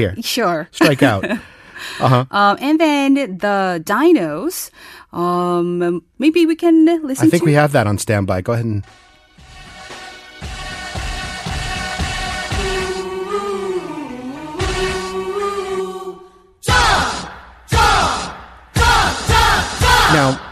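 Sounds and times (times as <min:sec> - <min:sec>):
speech: 0:00.0 - 0:09.0
baseball fans chanting a cheer: 0:12.0 - 0:20.5
shouted bursts: 0:16.6 - 0:20.5.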